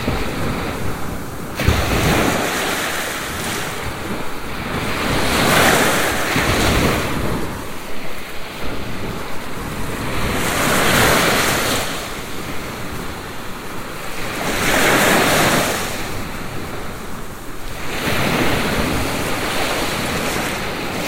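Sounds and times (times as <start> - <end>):
ocean waves: 0.0 - 21.0.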